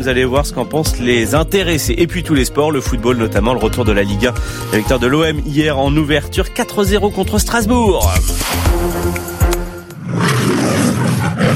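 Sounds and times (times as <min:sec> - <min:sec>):
speech: 0:00.0 - 0:08.9
MGM lion roaring logo sound: 0:09.9 - 0:11.5.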